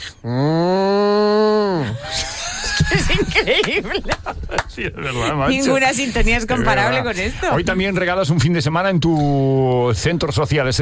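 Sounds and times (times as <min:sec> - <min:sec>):
speech: 0:00.2 - 0:00.5, 0:03.1 - 0:10.8
person imitating a cow's moo: 0:00.2 - 0:02.0
laughter: 0:01.8 - 0:05.7.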